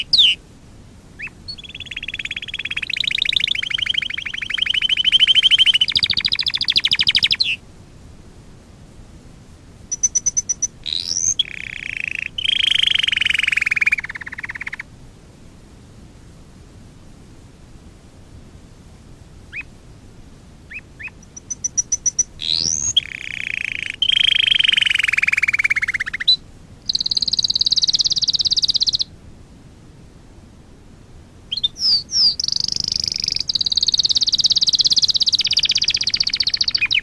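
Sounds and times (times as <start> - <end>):
domestic canary singing: 0.0 - 0.4, 1.2 - 7.6, 9.9 - 14.9, 19.5 - 19.7, 20.7 - 29.1, 31.5 - 37.0.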